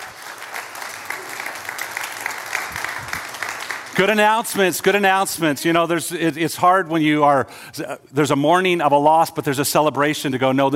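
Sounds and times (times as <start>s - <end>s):
audience applause: 0.0s - 5.0s
speech: 4.0s - 10.7s.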